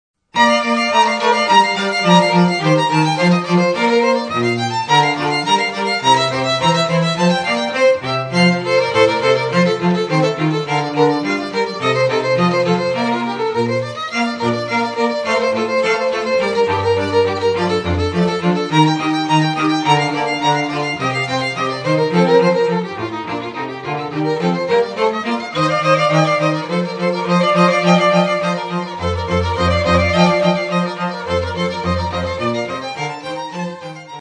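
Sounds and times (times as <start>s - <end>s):
strings: 0.4s - 34.1s.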